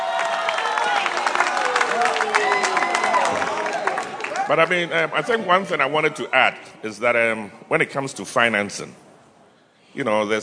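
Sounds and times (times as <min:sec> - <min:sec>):
audience clapping: 0:00.0 - 0:05.4
speech: 0:04.5 - 0:09.0, 0:10.0 - 0:10.4.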